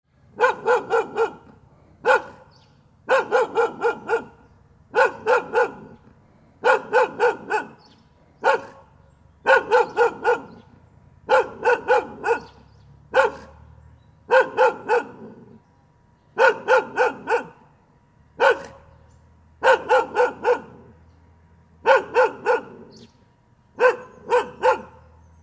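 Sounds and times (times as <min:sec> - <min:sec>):
dog barking: 0:00.4 - 0:06.0, 0:06.6 - 0:10.7, 0:11.3 - 0:13.7, 0:14.3 - 0:15.6, 0:16.4 - 0:17.7, 0:18.4 - 0:18.9, 0:19.6 - 0:21.0, 0:21.8 - 0:23.0, 0:23.8 - 0:25.2.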